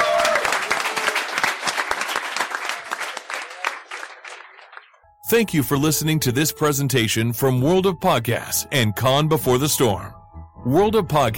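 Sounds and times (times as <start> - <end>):
audience applause for panelists: 0.0 - 5.0
speech: 5.3 - 11.3.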